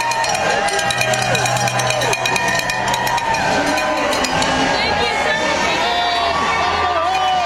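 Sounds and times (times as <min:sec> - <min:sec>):
crowd clapping and cheering welcoming veterans at San Diego airport Terminal 2: 0:00.0 - 0:04.6
many voices at San Diego airport: 0:00.0 - 0:07.4.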